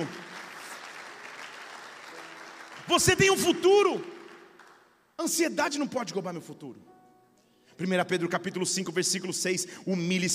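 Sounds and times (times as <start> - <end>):
audience applause: 0.0 - 4.9
speech: 2.9 - 4.2, 5.2 - 6.9, 7.8 - 10.3.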